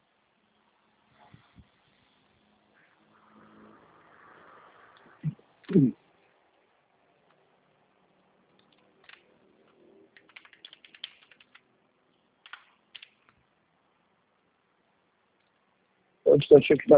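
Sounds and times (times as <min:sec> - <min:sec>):
speech: 0:05.7 - 0:06.0, 0:16.5 - 0:16.9
typing on a computer keyboard: 0:08.6 - 0:09.2, 0:10.1 - 0:11.7, 0:12.4 - 0:13.3.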